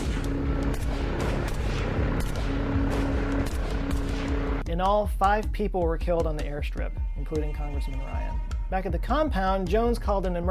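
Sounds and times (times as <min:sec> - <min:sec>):
gunfire sound effect: 0:00.0 - 0:04.6
speech: 0:04.8 - 0:10.4.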